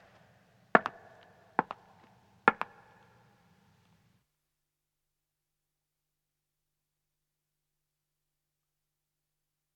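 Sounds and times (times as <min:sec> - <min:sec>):
woman's footsteps ascending stone: 0:00.8 - 0:02.8.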